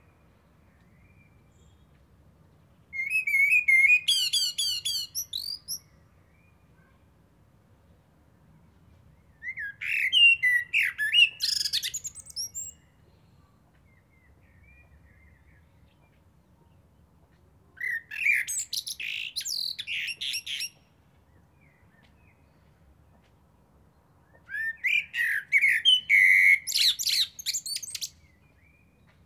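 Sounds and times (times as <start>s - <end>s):
Eurasian blackbird song phrase: 2.9s - 6.6s, 9.4s - 15.7s, 17.8s - 20.9s, 24.2s - 29.1s.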